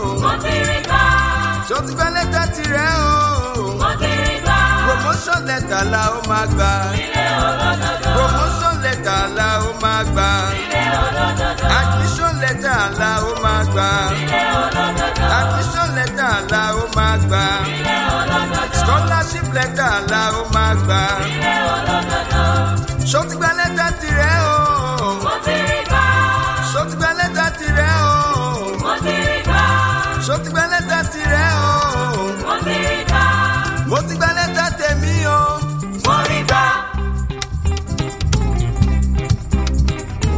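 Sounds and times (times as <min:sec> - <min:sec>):
Yoruba song medley: 0:00.0 - 0:40.3.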